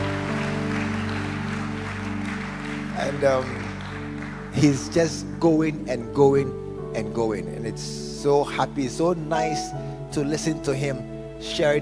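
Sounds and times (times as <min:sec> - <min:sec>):
applause: 0:00.0 - 0:05.9
speech: 0:03.0 - 0:03.6, 0:04.5 - 0:11.8.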